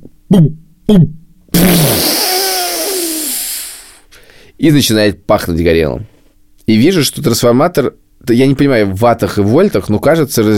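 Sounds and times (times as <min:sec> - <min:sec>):
voice imitating a malfunctioning coffee machine: 0:00.0 - 0:04.0
speech: 0:00.3 - 0:01.2, 0:04.6 - 0:06.1, 0:06.7 - 0:10.5.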